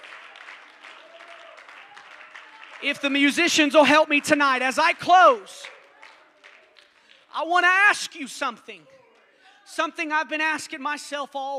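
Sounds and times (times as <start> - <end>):
audience clapping: 0.0 - 7.6
speech: 2.8 - 5.8, 7.4 - 9.0, 9.7 - 11.5.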